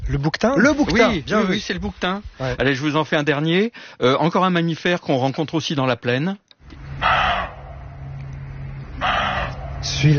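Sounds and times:
speech: 0.1s - 6.4s, 9.8s - 10.1s
roe deer barking: 6.9s - 8.0s, 9.0s - 10.0s.

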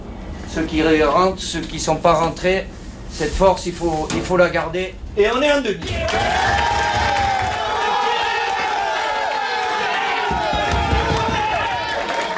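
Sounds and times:
speech: 0.5s - 6.7s
French national football team players shouting and chanting, celebrating a win: 5.8s - 12.3s.

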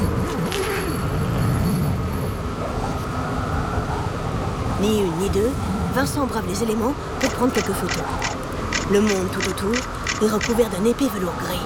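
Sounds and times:
strong blizzard wind roaring: 0.0s - 11.6s
speech: 4.8s - 11.6s.

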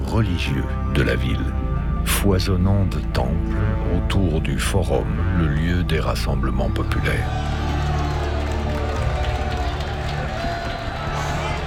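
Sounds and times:
speech: 0.2s - 1.6s, 2.2s - 7.6s
crowd gathered at a celebration: 6.9s - 11.6s.

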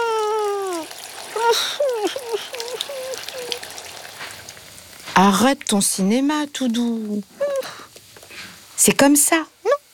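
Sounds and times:
shower water running: 0.0s - 7.9s
speech: 1.5s - 2.6s, 5.2s - 7.4s, 8.8s - 9.6s.

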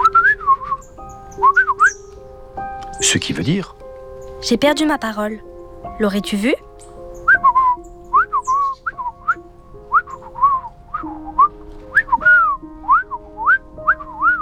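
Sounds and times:
person whistling imitation of a sparrow's reply: 0.0s - 2.1s, 7.3s - 14.4s
speech: 3.1s - 3.8s, 4.4s - 6.6s.

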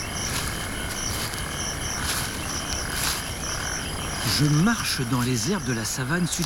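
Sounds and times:
broad hiss of insect noise: 0.0s - 6.4s
crickets chirping in savanna at night: 0.0s - 6.4s
speech: 4.4s - 6.4s.

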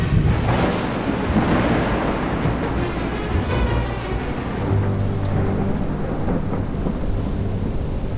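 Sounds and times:
heavy rain: 0.0s - 8.1s
rumbling thunder: 0.0s - 8.1s.

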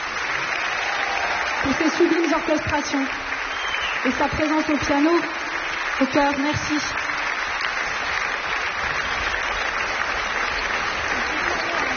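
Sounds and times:
standing audience and orchestra applauding at the Festival de Radio France: 0.0s - 11.9s
speech: 1.6s - 3.3s, 4.0s - 5.4s, 6.0s - 7.1s.

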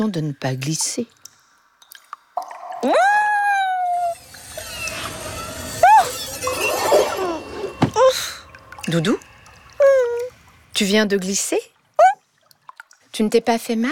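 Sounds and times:
speech: 0.0s - 1.2s, 2.8s - 3.0s, 8.9s - 9.3s, 10.8s - 11.7s, 13.2s - 13.9s
water dripping inside a wet cave: 0.8s - 5.5s, 6.5s - 13.4s
faint water trickling down wet cave walls: 1.0s - 13.7s.

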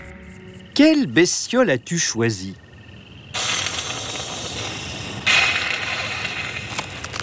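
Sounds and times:
speech: 0.8s - 2.6s
opossum hissing and spitting: 3.3s - 7.0s.

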